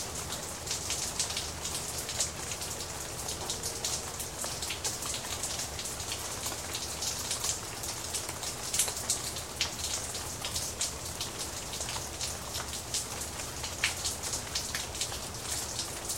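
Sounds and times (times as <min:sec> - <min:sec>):
rain: 0:00.0 - 0:16.1.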